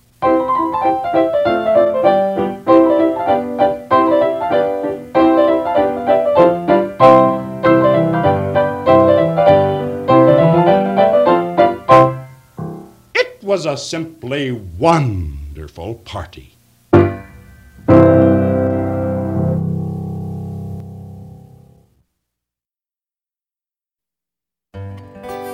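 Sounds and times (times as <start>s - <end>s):
lively piano tune: 0.2s - 14.4s, 16.9s - 21.3s
speech: 13.6s - 16.6s.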